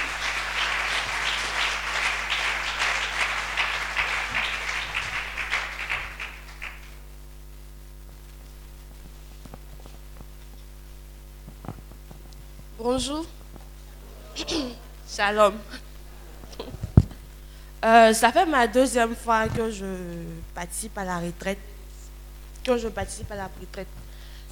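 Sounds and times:
crowd applauding at a church retreat: 0.0s - 7.0s
speech: 12.8s - 13.4s, 15.2s - 15.8s, 17.8s - 21.7s, 22.7s - 23.9s.

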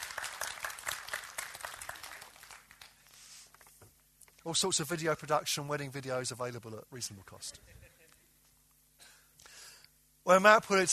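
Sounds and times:
round of applause: 0.0s - 3.7s
speech: 4.4s - 8.0s, 10.3s - 10.9s.

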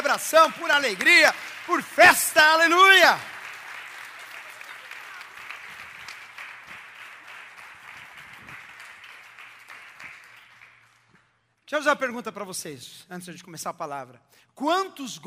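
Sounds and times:
audience applause: 0.0s - 11.1s
speech: 0.1s - 3.3s, 11.7s - 15.2s.

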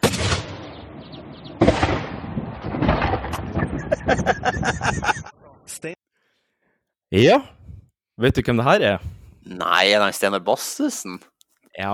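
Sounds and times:
whaling gun shot: 0.0s - 3.9s
laughter: 3.5s - 5.8s
speech: 7.1s - 7.6s, 8.2s - 11.9s.

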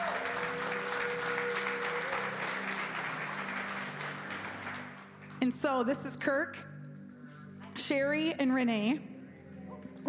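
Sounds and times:
people cheering: 0.0s - 4.9s
speech: 5.4s - 6.7s, 7.9s - 9.1s.

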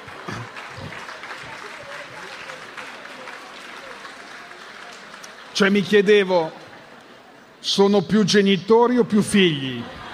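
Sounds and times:
crowd applauding: 0.0s - 7.3s
speech: 5.6s - 6.6s, 7.6s - 10.0s
laughter: 9.4s - 10.1s.

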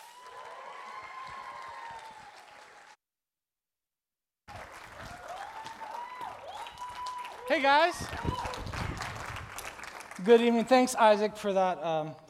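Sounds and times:
audience applause welcoming a speaker at an evening gathering: 0.0s - 3.0s, 4.5s - 10.5s
speech: 7.5s - 8.3s, 10.2s - 12.2s.

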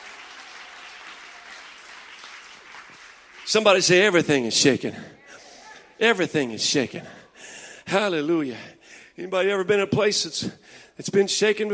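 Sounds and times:
crowd clapping hands in praise: 0.0s - 4.3s
speech: 3.5s - 5.2s, 6.0s - 7.2s, 7.9s - 11.7s.

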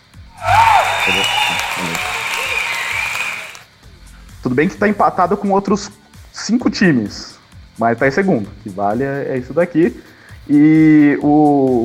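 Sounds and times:
applause: 0.4s - 3.6s
speech: 4.5s - 11.8s.

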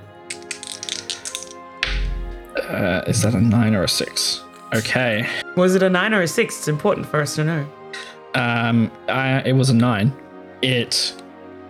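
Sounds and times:
percentage dice clattering across a hard surface: 0.3s - 2.1s
speech: 2.6s - 7.8s, 8.4s - 11.2s.

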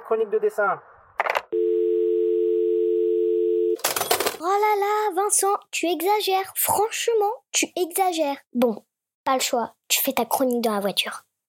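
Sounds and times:
speech: 0.1s - 0.9s, 4.4s - 11.3s
telephone dial tone: 1.6s - 3.8s.

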